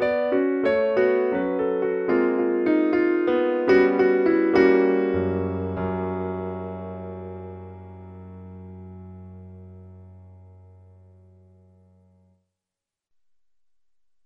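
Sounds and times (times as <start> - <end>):
piano part of a trumpet sonata: 0.0 - 12.3.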